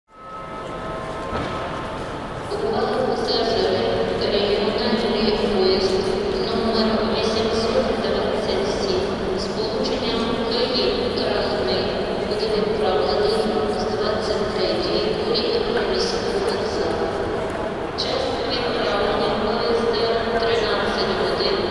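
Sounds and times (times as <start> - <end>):
train station ambience at Kyiv central station: 0.1 - 21.6.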